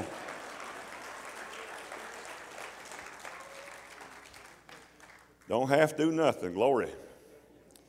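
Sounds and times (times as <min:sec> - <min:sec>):
audience clapping: 0:00.0 - 0:05.6
speech: 0:05.5 - 0:07.0.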